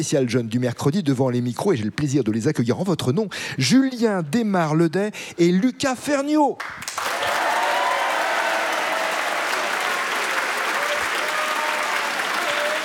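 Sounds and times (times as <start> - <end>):
speech: 0.0 - 7.4
large audience applause at a live show: 6.8 - 12.8.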